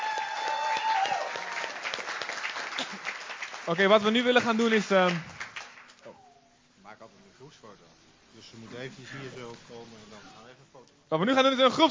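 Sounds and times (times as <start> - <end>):
audience applause: 0.0 - 6.0
speech: 3.7 - 5.3, 7.0 - 11.8.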